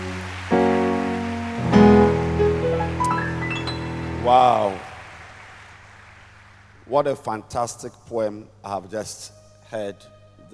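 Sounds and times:
audience applause: 0:00.0 - 0:06.9
speech: 0:04.2 - 0:04.8, 0:06.9 - 0:10.5.

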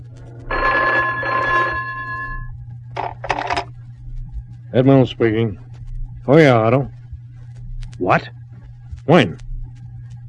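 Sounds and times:
low steady hum: 0:00.0 - 0:10.2
old-style telephone bell ringing: 0:00.5 - 0:02.5
speech: 0:04.7 - 0:05.7, 0:06.3 - 0:07.0, 0:08.0 - 0:08.4, 0:09.1 - 0:09.4.

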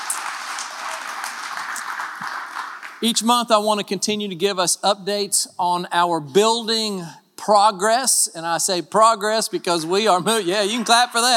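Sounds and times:
crowd clapping: 0:00.0 - 0:03.2
speech: 0:03.0 - 0:11.3.

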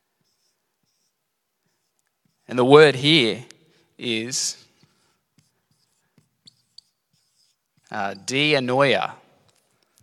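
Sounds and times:
pen scratching on a surface while drawing a brain: 0:00.2 - 0:02.7, 0:04.6 - 0:08.4
speech: 0:02.5 - 0:04.6, 0:07.9 - 0:09.2.

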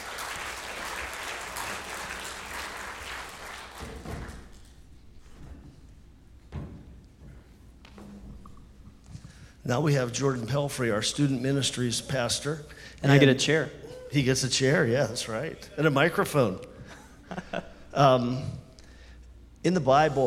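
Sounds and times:
crowd applauding: 0:00.0 - 0:04.8
speech: 0:09.7 - 0:16.7, 0:17.5 - 0:18.6, 0:19.6 - 0:20.2
laughter: 0:16.8 - 0:17.9.

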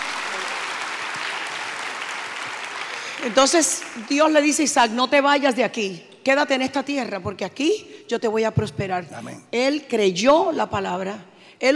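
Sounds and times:
audience applause: 0:00.0 - 0:04.1
speech: 0:03.2 - 0:11.7.

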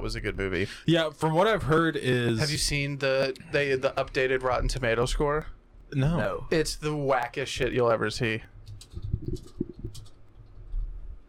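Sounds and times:
speech: 0:00.0 - 0:08.5
typing a Google search on a computer keyboard: 0:08.7 - 0:10.8.

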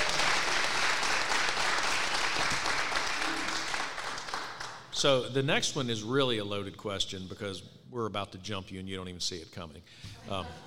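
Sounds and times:
crowd applauding: 0:00.0 - 0:04.9
speech: 0:05.0 - 0:10.6.

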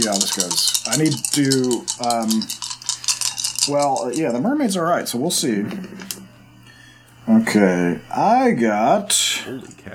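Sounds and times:
speech: 0:00.0 - 0:02.7, 0:03.7 - 0:06.2, 0:07.3 - 0:09.9
dice being thrown and rolling: 0:00.0 - 0:04.4.

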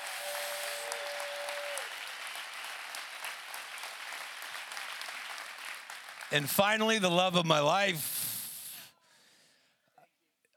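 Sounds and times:
audience clapping: 0:00.0 - 0:08.0
speech: 0:06.3 - 0:08.2.

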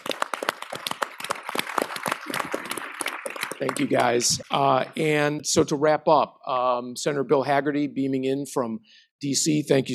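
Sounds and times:
audience round of applause: 0:00.0 - 0:04.8
speech: 0:03.6 - 0:09.9.

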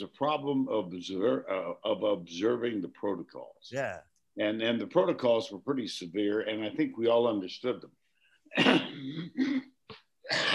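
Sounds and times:
speech: 0:00.0 - 0:09.7
throat clearing: 0:08.5 - 0:10.5
smoker's bronchitis cough: 0:08.6 - 0:09.7, 0:10.3 - 0:10.5.

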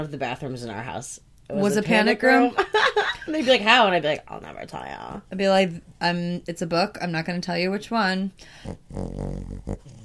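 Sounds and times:
speech: 0:00.0 - 0:10.0
sleeping dog snoring: 0:08.5 - 0:10.0.

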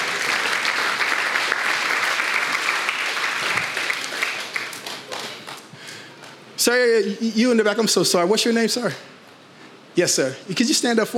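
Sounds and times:
audience clapping: 0:00.0 - 0:06.4
speech: 0:06.6 - 0:09.1, 0:10.0 - 0:11.1.

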